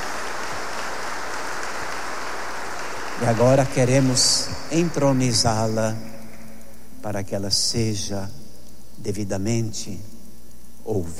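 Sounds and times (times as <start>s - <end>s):
audience applauding: 0.0s - 5.7s
speech: 3.2s - 6.2s, 7.0s - 8.4s, 9.0s - 10.1s, 10.8s - 11.1s.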